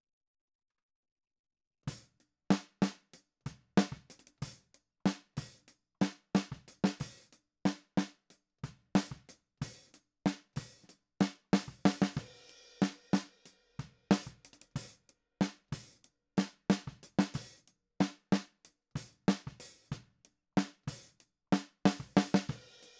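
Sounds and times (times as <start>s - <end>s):
snare drum: 3.8s - 4.1s, 6.0s - 8.2s, 10.3s - 13.3s, 14.1s - 15.6s, 16.4s - 18.5s, 19.1s - 20.0s, 20.6s - 22.9s.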